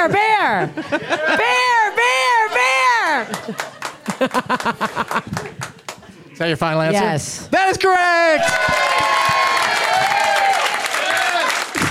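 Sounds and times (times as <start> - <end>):
speech: 0.0 - 1.7, 3.2 - 5.7, 6.4 - 8.9
laughter: 0.0 - 5.9
audience cheering: 1.2 - 4.8, 8.1 - 11.8.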